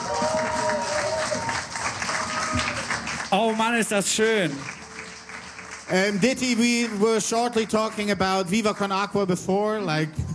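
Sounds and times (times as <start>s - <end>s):
audience applause: 0.0s - 9.3s
speech: 3.3s - 4.8s, 5.9s - 10.2s.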